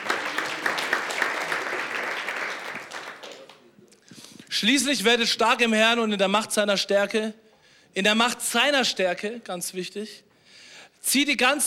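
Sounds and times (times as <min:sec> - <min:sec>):
crowd applauding: 0:00.0 - 0:03.7
speech: 0:04.6 - 0:07.4, 0:08.0 - 0:10.3, 0:11.0 - 0:11.6.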